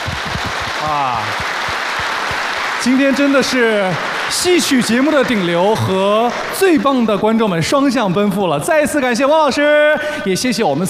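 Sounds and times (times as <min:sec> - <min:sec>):
studio audience clapping on a Henan TV opera program: 0:00.0 - 0:08.8
speech: 0:00.8 - 0:01.5, 0:02.8 - 0:10.8
person's voice: 0:02.8 - 0:10.8.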